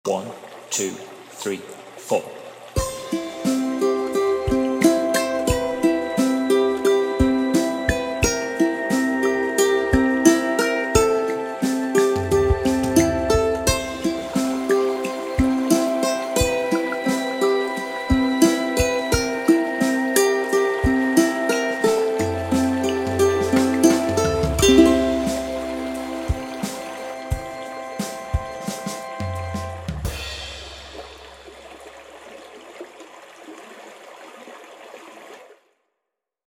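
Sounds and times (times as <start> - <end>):
ukulele: 2.8 - 31.8.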